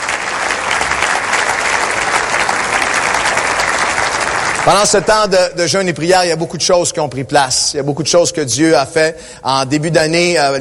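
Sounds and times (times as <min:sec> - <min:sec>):
audience applause: 0:00.0 - 0:05.8
speech: 0:04.7 - 0:10.5.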